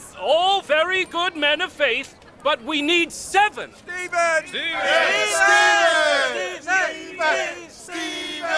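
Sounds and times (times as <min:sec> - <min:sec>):
speech: 0:00.3 - 0:08.5
crowd shouting a name: 0:03.9 - 0:08.5.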